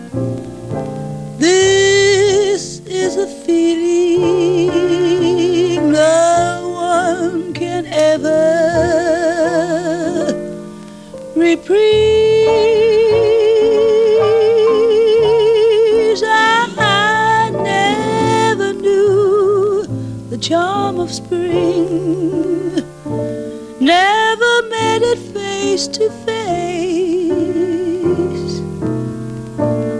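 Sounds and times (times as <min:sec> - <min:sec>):
jazz music: 0:00.0 - 0:29.9.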